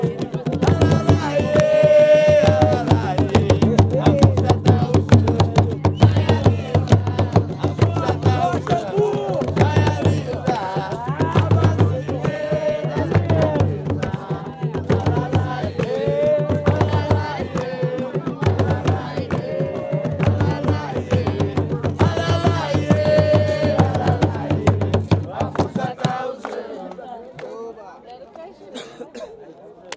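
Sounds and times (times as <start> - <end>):
jongo music: 0.0 - 26.8.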